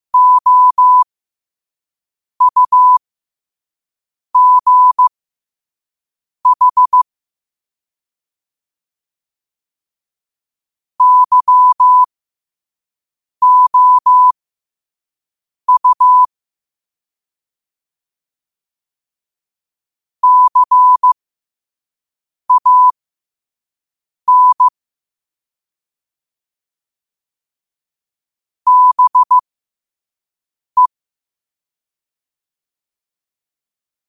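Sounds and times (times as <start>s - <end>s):
morse code at 5 wpm: 0.2s - 1.1s, 2.4s - 3.0s, 4.4s - 5.1s, 6.5s - 7.1s, 11.0s - 12.1s, 13.4s - 14.4s, 15.7s - 16.3s, 20.2s - 21.2s, 22.5s - 22.9s, 24.3s - 24.7s, 28.7s - 29.4s.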